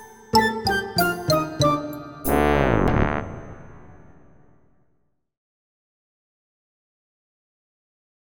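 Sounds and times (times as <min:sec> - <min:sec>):
tuba: 0:00.4 - 0:04.3.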